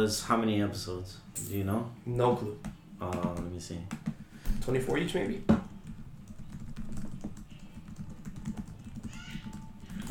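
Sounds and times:
speech: 0:00.0 - 0:05.6
rapid typing on a computer keyboard: 0:05.7 - 0:10.0.

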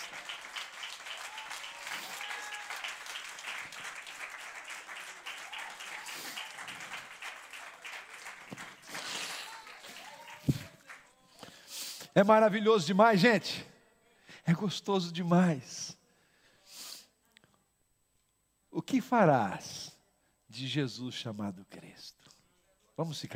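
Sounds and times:
audience applauding: 0:00.0 - 0:11.2
speech: 0:12.2 - 0:13.7, 0:14.5 - 0:15.9, 0:18.9 - 0:19.8, 0:20.6 - 0:21.8, 0:23.0 - 0:23.3.

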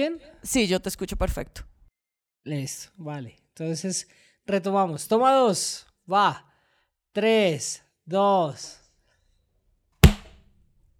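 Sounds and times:
speech: 0:00.0 - 0:01.8, 0:02.4 - 0:06.5, 0:07.1 - 0:08.8
improvised clapperboard slate clap: 0:10.0 - 0:10.4.

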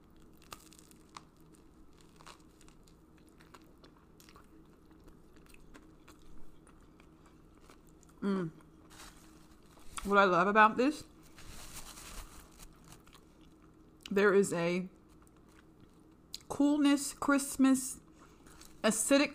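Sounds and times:
crunchy bite into a toasted king oyster mushroom sandwich: 0:00.1 - 0:06.8
speech: 0:08.2 - 0:08.6, 0:10.0 - 0:11.1, 0:14.2 - 0:15.0, 0:16.6 - 0:18.0, 0:18.8 - 0:19.3.

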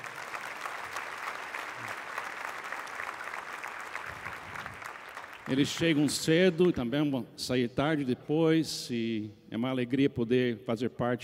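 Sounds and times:
audience applause: 0:00.0 - 0:06.0
speech: 0:05.5 - 0:11.2.

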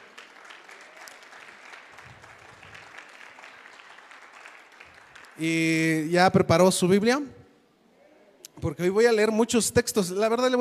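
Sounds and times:
audience applause: 0:00.0 - 0:05.4
speech: 0:05.4 - 0:07.4, 0:08.7 - 0:10.6.

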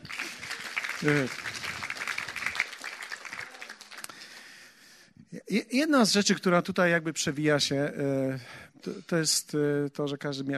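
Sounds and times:
audience applause: 0:00.0 - 0:04.6
speech: 0:01.0 - 0:01.5, 0:05.5 - 0:10.5.

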